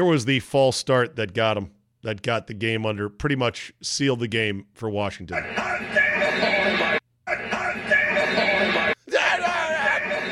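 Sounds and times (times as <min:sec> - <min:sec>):
speech: 0:00.0 - 0:06.4
laughter: 0:05.4 - 0:10.2
person screaming in excitement: 0:09.0 - 0:10.2.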